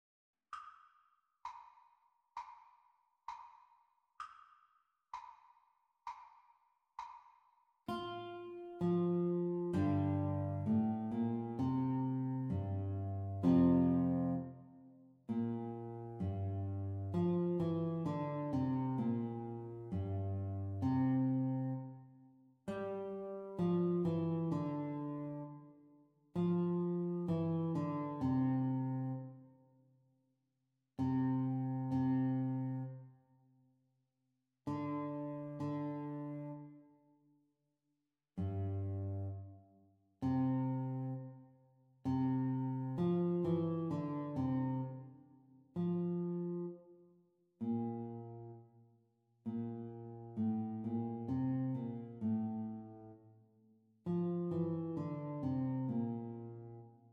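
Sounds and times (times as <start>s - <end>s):
guitar duet playalong practice: 7.9s - 22.1s, 22.7s - 25.8s, 26.4s - 29.4s, 31.0s - 33.0s, 34.7s - 36.8s, 38.4s - 39.5s, 40.2s - 41.4s, 42.0s - 45.2s, 45.8s - 46.8s, 47.6s - 48.6s, 49.4s - 53.2s, 54.0s - 57.1s.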